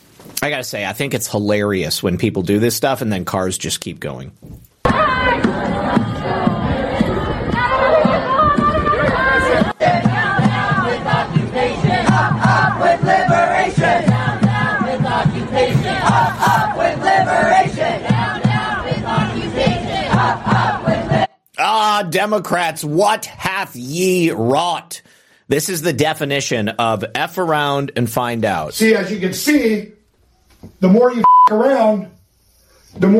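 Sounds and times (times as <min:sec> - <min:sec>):
speech: 0:00.4 - 0:04.7, 0:22.1 - 0:30.0, 0:30.7 - 0:32.2, 0:32.9 - 0:33.1
protest crowd shouting and chanting in the street: 0:04.8 - 0:21.3.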